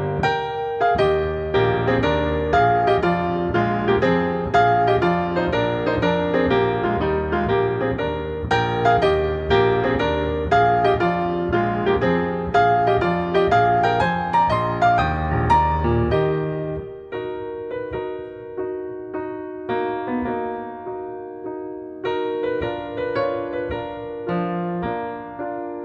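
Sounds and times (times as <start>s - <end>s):
group piano: 0.0s - 25.8s.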